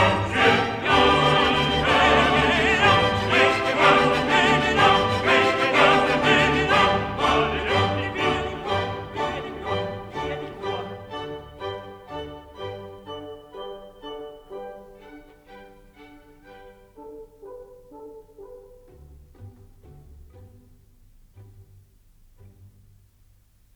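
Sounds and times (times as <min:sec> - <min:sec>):
choir singing: 0:00.0 - 0:15.1.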